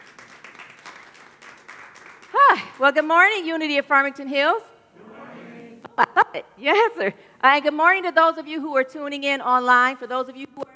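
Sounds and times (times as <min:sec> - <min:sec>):
audience applause: 0:00.0 - 0:02.6
speech: 0:02.8 - 0:04.7, 0:06.3 - 0:10.7.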